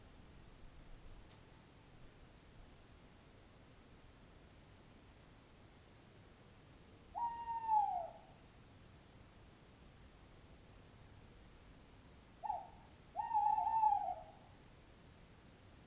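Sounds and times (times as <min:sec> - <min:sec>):
owl hooting: 0:07.1 - 0:08.4, 0:12.4 - 0:14.5.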